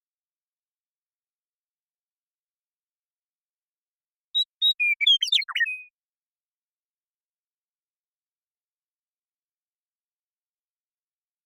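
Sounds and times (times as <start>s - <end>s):
western meadowlark song: 4.4s - 6.0s.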